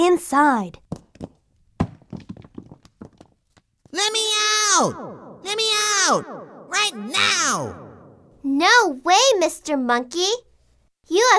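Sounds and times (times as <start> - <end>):
speech: 0.0 - 1.3, 3.9 - 10.5, 11.1 - 11.3
rocks piled up to block a cave door: 0.9 - 3.4.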